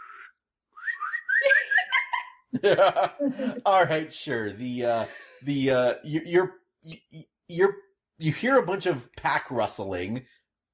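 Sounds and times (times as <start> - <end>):
person whistling: 0.0 - 1.8
laughter: 1.4 - 9.6
speech: 2.5 - 10.4.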